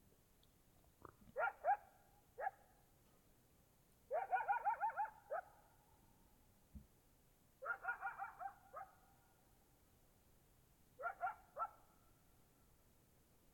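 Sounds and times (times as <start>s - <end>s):
coyotes yipping: 1.3s - 2.6s, 4.1s - 5.6s, 7.6s - 9.0s, 11.0s - 11.8s.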